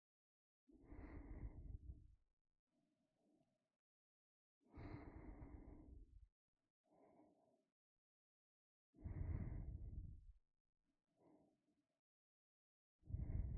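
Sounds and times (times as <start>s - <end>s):
ASMR breathing in the right ear: 0.8s - 2.0s, 4.7s - 6.3s, 6.9s - 7.7s, 9.0s - 10.3s, 11.2s - 11.6s, 13.1s - 13.5s.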